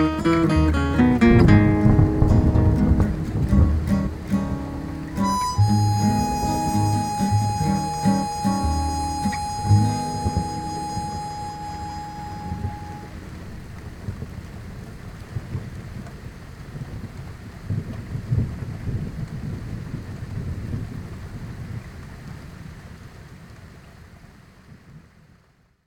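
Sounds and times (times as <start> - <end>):
rough tracking mix of music: 0.0 - 13.7.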